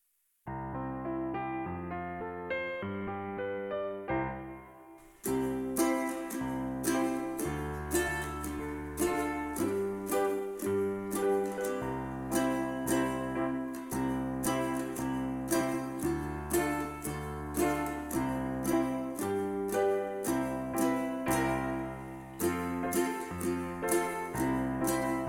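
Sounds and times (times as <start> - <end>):
instrumental music: 0.5 - 25.2.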